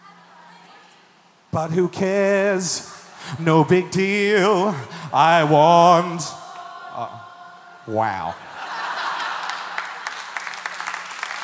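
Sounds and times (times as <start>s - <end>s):
speech: 1.5s - 6.4s, 7.0s - 7.3s, 7.9s - 8.5s
laughter: 7.9s - 10.4s
audience applause after a singing performance: 8.5s - 11.4s.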